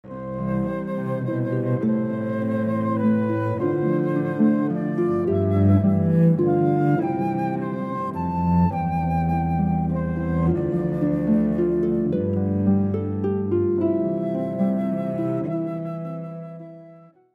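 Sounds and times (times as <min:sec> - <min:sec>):
cello: 0:00.0 - 0:17.2
flute: 0:00.0 - 0:17.3
harp: 0:00.0 - 0:17.3.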